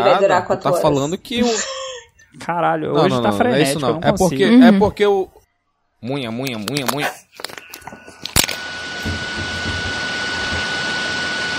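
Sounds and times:
speech: 0.0 - 5.4, 6.0 - 8.0
hair dryer running: 8.2 - 11.5.

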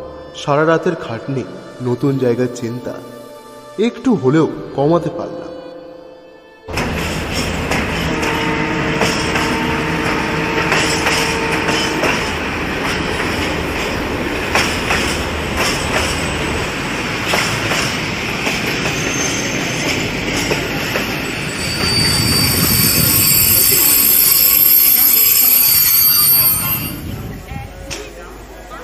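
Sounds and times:
speech: 0.4 - 3.2, 3.8 - 5.6
early-morning passenger train bound for Medinipur rolling along the rails: 6.7 - 28.8
train wheel squeal: 18.8 - 27.1.

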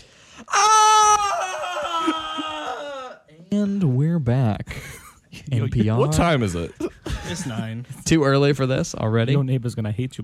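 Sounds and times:
person screaming loudly: 0.5 - 3.3
speech: 3.5 - 4.8, 5.4 - 10.2.

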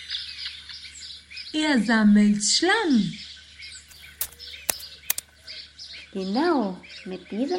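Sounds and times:
speech: 1.6 - 3.3, 6.1 - 7.5
rufous hornero calling: 3.9 - 5.4.

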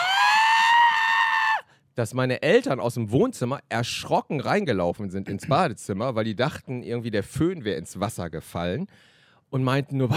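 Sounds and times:
person imitating a scream of delight: 0.0 - 1.7
speech: 2.0 - 10.1.

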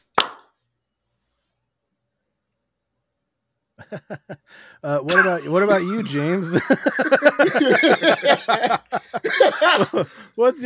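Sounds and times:
group clapping once in unison: 0.0 - 0.6
laughter: 3.8 - 4.4, 5.1 - 10.3
speech: 3.9 - 10.6.

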